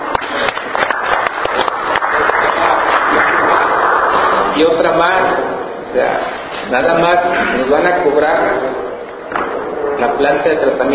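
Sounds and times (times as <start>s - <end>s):
audience applause: 0.0s - 4.5s
speech: 4.6s - 9.4s, 10.0s - 10.9s.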